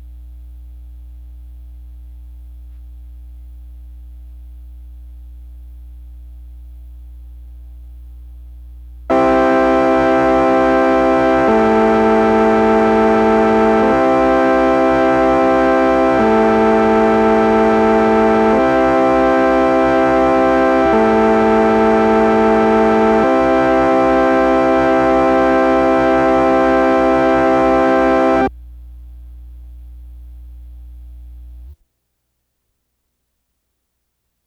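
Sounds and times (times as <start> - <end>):
Farfisa electronic organ: 9.1 - 28.5.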